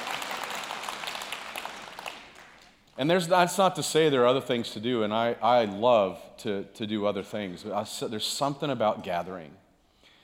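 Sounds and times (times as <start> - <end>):
audience clapping: 0.0 - 3.0
speech: 3.0 - 9.6.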